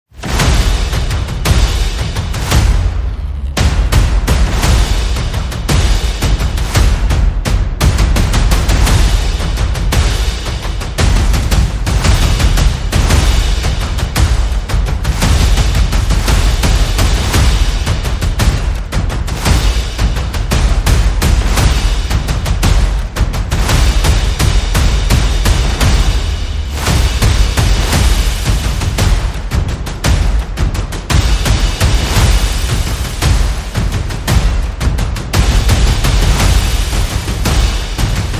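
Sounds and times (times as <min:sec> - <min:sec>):
percussion: 0:00.1 - 0:38.3.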